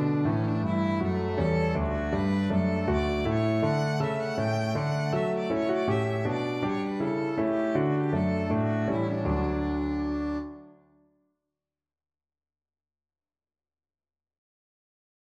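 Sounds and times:
violin playing a bourree: 0.0 - 10.7.

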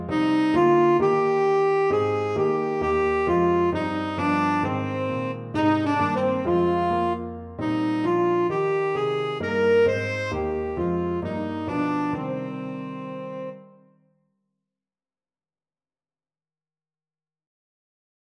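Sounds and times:
tenor saxophone: 0.0 - 13.8.

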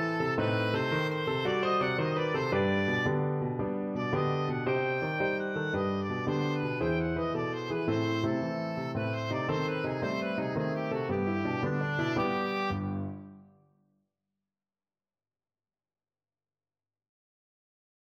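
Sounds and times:
oboe playing hora dance tune: 0.0 - 13.3.

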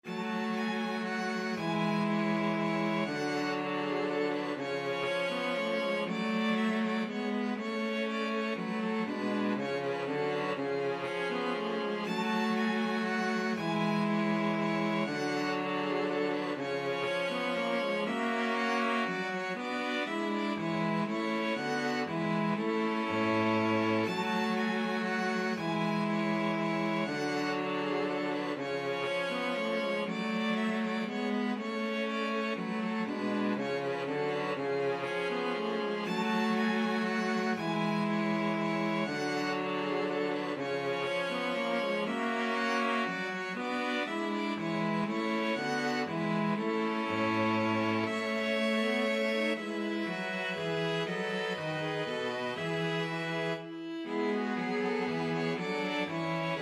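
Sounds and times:
string quartet playing a minuet in G minor: 0.0 - 56.6.

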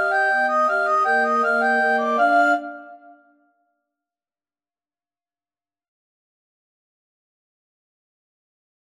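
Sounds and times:
recorder ensemble: 0.0 - 3.2.

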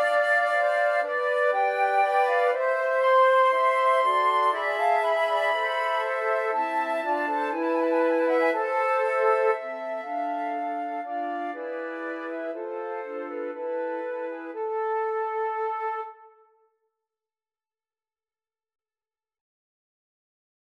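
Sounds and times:
flute quartet: 0.0 - 16.4.

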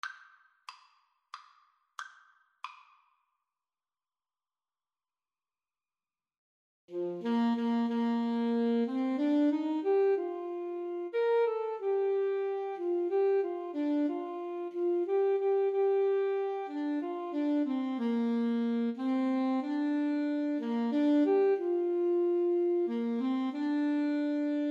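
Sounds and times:
alto saxophone melody: 6.9 - 24.6.

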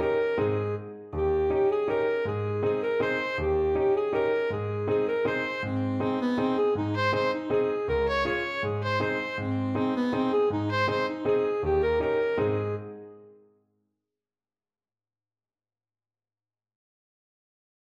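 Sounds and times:
alto saxophone: 0.0 - 13.1.

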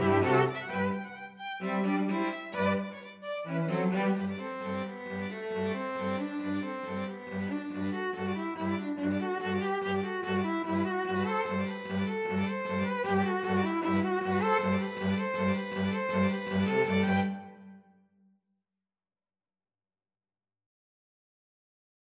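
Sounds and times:
two violins and cello playing: 0.0 - 17.7.

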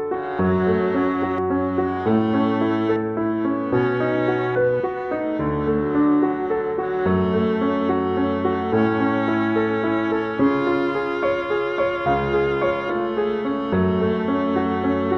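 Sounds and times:
violin and viola duet: 0.2 - 15.1.

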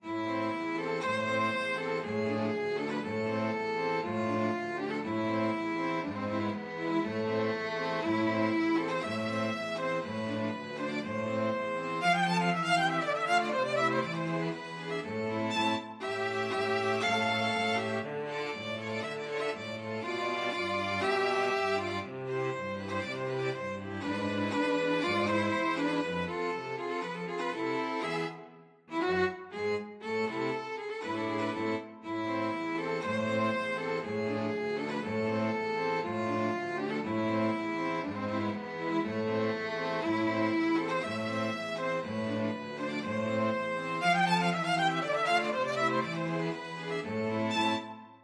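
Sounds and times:
string quartet playing a dance: 0.0 - 48.2.

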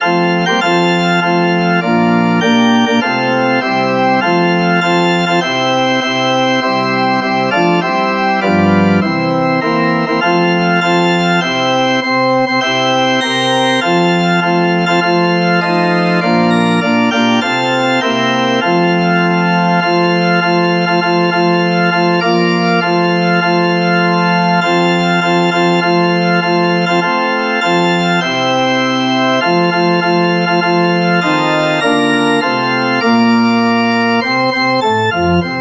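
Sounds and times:
organ: 0.0 - 35.5.

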